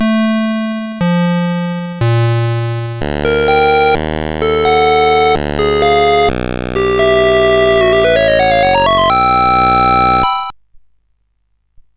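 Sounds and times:
music box melody on SID CSG8580R5 chip: 0.0 - 10.5.

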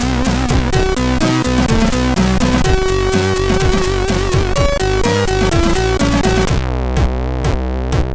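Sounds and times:
MOS6581R3 SID chip drum track: 0.0 - 8.1.

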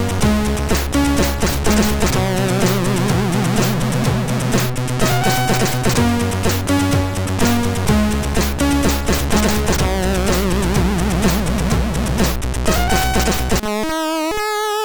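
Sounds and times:
alien sound from a MOS6581R2 chip: 0.0 - 13.8.

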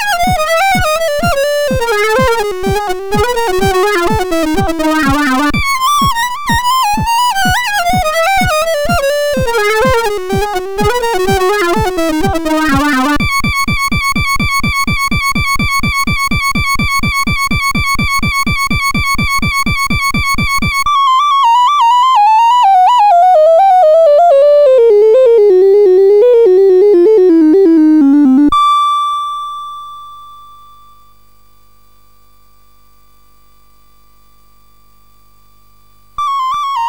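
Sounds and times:
C-64 SID MOS6581R4 chip sound: 0.0 - 28.5, 36.2 - 36.8.

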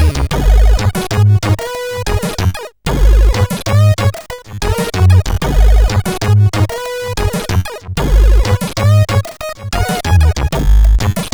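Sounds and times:
disco music intro: 0.1 - 11.1.

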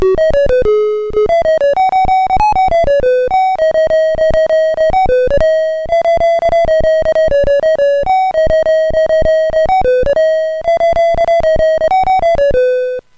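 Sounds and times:
chiptune bells melody on SID CSG8580R5 chip: 0.0 - 13.0.

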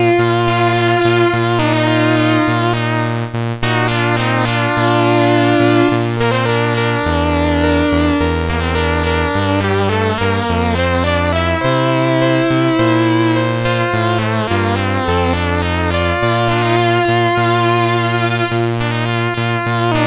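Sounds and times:
chiptune song on a sound chip: 0.0 - 20.0.

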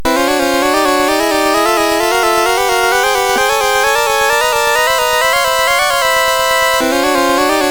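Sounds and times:
minor ninth chord on a SID MOS6581R4 chip: 0.0 - 7.7.

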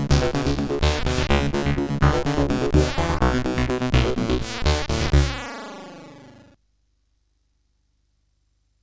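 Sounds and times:
CSG8580R5 sound chip noise: 0.0 - 6.6.

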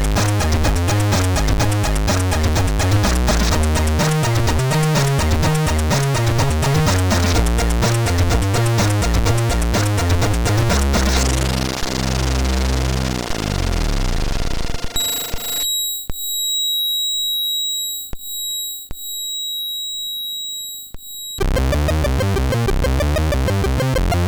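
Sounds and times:
chiptune music from a MOS6581R3 sound chip: 0.0 - 15.6, 21.4 - 24.2.

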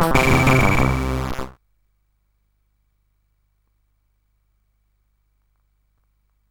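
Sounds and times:
Morse code beeps on CSG8580R5 sound chip: 0.1 - 1.4.

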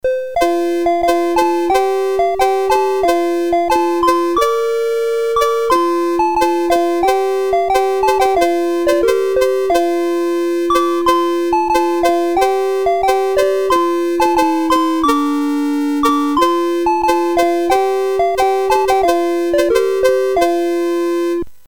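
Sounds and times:
CSG8580R5 sound chip: 0.3 - 21.4.

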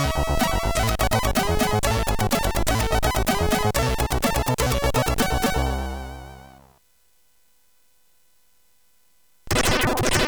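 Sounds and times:
chiptune music on SID CSG8580R5 chip: 0.0 - 6.6.

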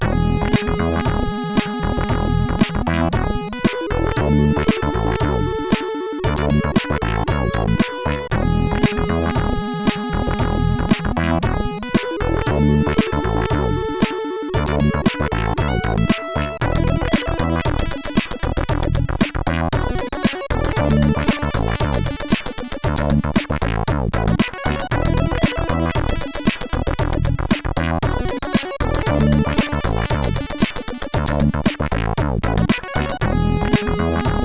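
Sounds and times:
disco music on a CSG8580R5 chip: 0.0 - 34.4.

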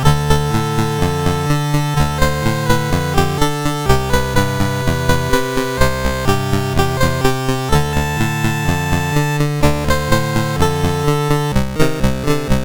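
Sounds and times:
chiptune music on SID MOS6581R4 sound chip: 0.0 - 12.6.

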